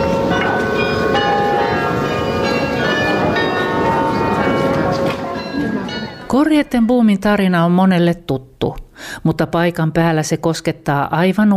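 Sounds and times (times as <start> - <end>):
church bells of Grote Kerk ringing: 0.0 - 7.3
speech: 6.3 - 11.5.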